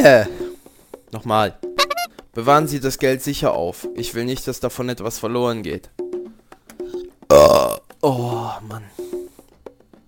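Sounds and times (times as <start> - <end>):
speech: 0.0 - 0.4, 1.1 - 1.8, 2.4 - 6.1, 7.3 - 9.1
person burping: 7.3 - 8.4.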